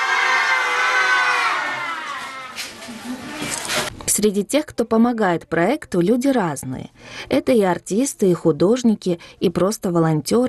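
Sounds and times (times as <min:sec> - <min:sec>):
crowd cheering and shouting hurray at a charity project anniversary event: 0:00.0 - 0:03.2
speech: 0:04.2 - 0:10.4.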